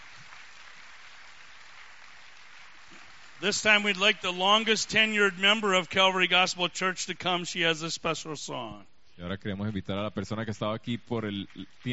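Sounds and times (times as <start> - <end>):
audience applause: 0.0 - 6.3
speech: 3.4 - 11.9.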